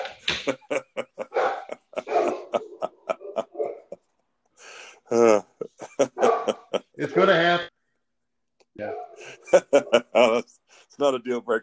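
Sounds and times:
laughter: 0.0 - 4.0, 4.7 - 7.7, 9.2 - 10.4
speech: 0.4 - 1.0, 5.1 - 5.5, 7.0 - 7.7, 9.7 - 11.6
dog barking: 1.2 - 3.8, 6.0 - 6.6.

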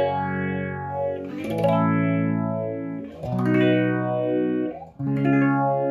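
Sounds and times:
electric guitar through an Electro-Harmonix Small Stone phaser pedal: 0.0 - 5.8.

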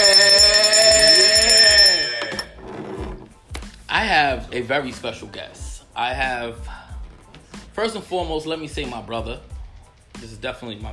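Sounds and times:
bright shrill bell ringing: 0.0 - 2.6
speech: 4.3 - 6.8, 7.8 - 9.5, 10.2 - 10.9.

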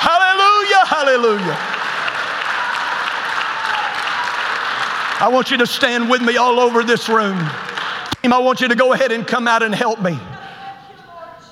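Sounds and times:
audience applause: 0.0 - 9.0
speech: 1.1 - 1.8, 5.2 - 10.3.

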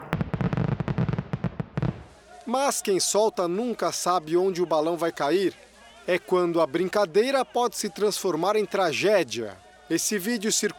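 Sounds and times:
fireworks crackling and popping at a balloon launch: 0.0 - 9.4
speech: 2.5 - 10.7.

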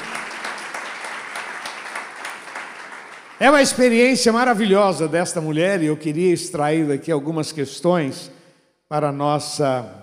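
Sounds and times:
audience applause: 0.0 - 4.2
speech: 3.4 - 10.0.

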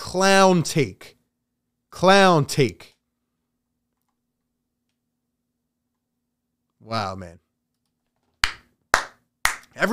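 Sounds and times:
speech: 0.1 - 1.2, 1.9 - 2.9, 6.8 - 7.4, 9.8 - 9.9
round of applause: 8.4 - 9.9.

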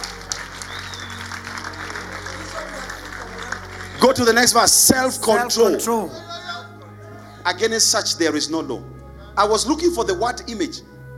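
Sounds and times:
audience clapping: 0.0 - 5.6
laughter: 0.1 - 7.8
speech: 4.1 - 6.3, 7.4 - 10.9.

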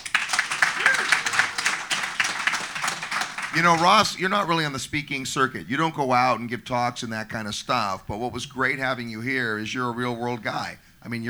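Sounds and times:
audience applause: 0.0 - 5.1
laughter: 0.0 - 11.2
speech: 3.6 - 11.2.

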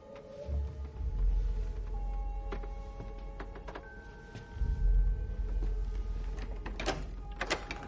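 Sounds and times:
door opening with a low rumbling scrape: 0.0 - 4.0, 4.6 - 7.8.

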